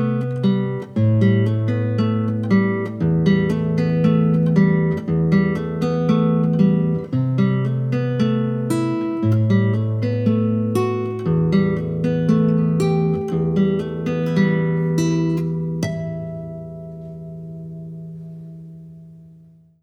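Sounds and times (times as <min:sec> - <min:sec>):
guitar: 0:00.0 - 0:19.8.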